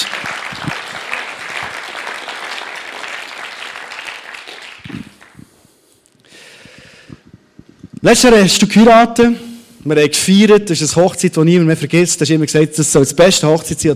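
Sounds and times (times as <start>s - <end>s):
audience applause: 0.0s - 5.4s
speech: 8.0s - 13.9s.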